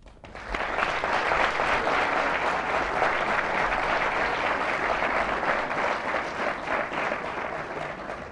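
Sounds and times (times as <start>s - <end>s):
audience applause at the LSE welcoming Chancellor Klima: 0.0s - 8.3s.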